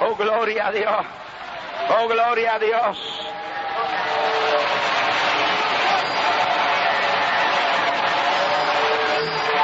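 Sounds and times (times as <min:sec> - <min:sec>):
speech: 0:00.2 - 0:01.2, 0:01.8 - 0:05.6
church congregation applauding in a sustained ovation: 0:03.2 - 0:09.6.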